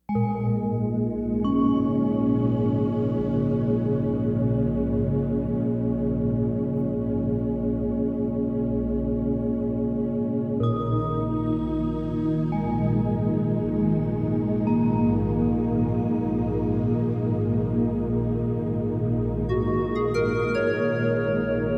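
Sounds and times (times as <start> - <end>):
meditation music: 0.1 - 21.7.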